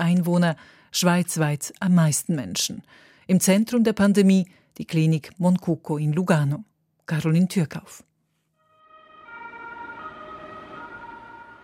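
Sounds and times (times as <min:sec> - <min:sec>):
speech: 0:00.0 - 0:08.1
ambulance siren outside the Moncucco clinic in Lugano: 0:08.7 - 0:11.6.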